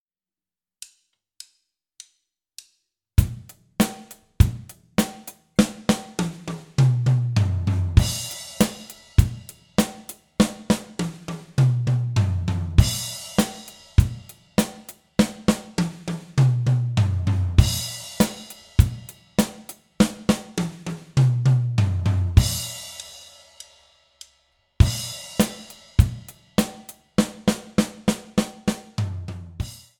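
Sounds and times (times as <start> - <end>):
one-bar drum fills: 3.2 - 23.1, 24.8 - 29.9.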